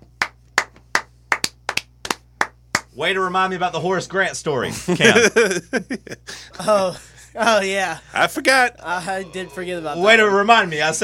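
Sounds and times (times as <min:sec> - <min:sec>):
faint low hum: 0:00.0 - 0:11.0
sparse hand clapping as a round of applause for a show member: 0:00.1 - 0:02.9
speech: 0:03.0 - 0:11.0
laughter: 0:04.7 - 0:08.2.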